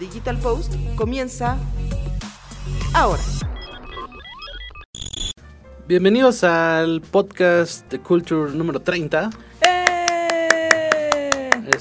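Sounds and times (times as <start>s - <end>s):
speech: 0.0s - 1.8s, 2.9s - 3.5s, 5.9s - 9.5s
applause sound effect: 9.6s - 11.7s.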